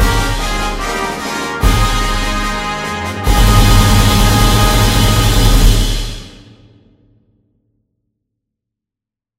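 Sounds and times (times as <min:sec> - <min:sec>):
national anthem being played: 0:00.0 - 0:06.6.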